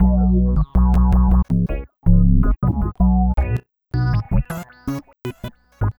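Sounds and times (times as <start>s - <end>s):
funk riff: 0.0s - 4.4s.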